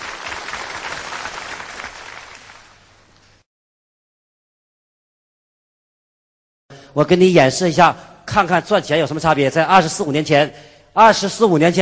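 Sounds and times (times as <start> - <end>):
audience applause: 0.0 - 2.9
speech: 6.9 - 11.8.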